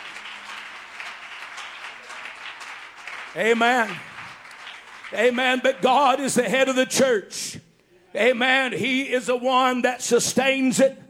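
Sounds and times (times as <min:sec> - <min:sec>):
audience clapping: 0:00.0 - 0:06.5
speech: 0:03.4 - 0:04.1, 0:05.1 - 0:11.0.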